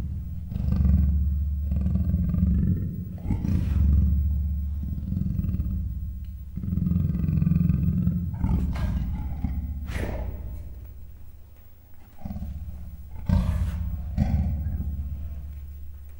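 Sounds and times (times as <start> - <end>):
captive male and female leopards growling in a zoo in Miskolc: 0.0 - 16.1.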